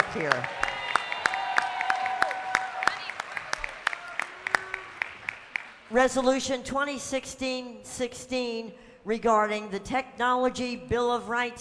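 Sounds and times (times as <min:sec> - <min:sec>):
scattered applause: 0:00.0 - 0:05.9
speech: 0:00.1 - 0:00.6, 0:05.9 - 0:11.5.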